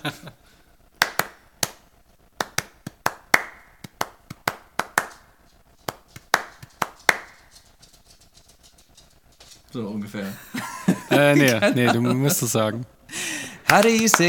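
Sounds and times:
laughter: 0.0 - 0.4, 10.2 - 14.2
speech: 0.0 - 0.4, 9.8 - 13.0, 13.7 - 14.2
single pair of hands clapping a song's rhythm: 1.0 - 7.6, 13.4 - 14.2.

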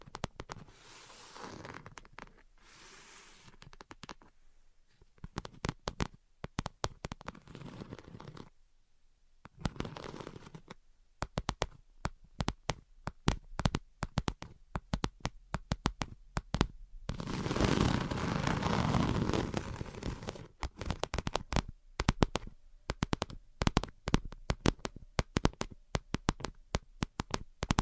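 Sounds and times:
tapping and scratching: 0.0 - 2.5, 3.4 - 4.3, 5.2 - 8.5, 9.5 - 27.8.

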